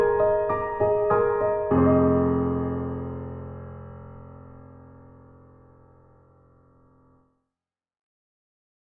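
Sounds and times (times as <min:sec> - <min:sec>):
classical piano music: 0:00.0 - 0:07.2.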